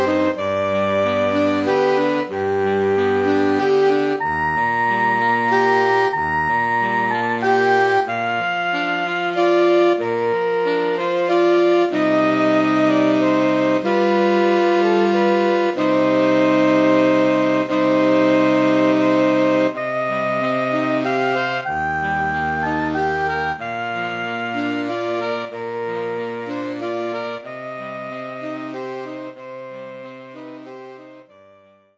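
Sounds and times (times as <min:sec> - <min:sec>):
saxophone melody: 0:00.0 - 0:31.9.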